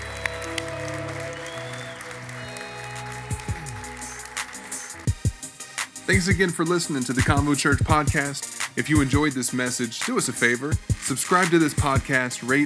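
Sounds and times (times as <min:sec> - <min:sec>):
audience applause: 0:00.0 - 0:05.1
speech: 0:06.1 - 0:12.6.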